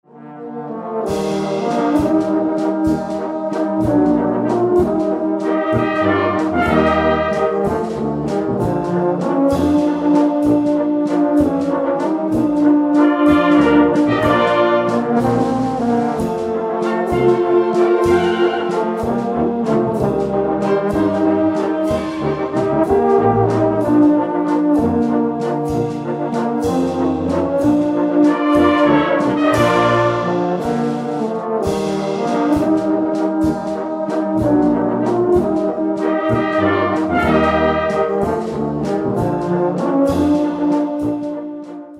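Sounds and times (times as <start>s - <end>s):
Tiroler tenor horn waltz: 0.1s - 41.9s.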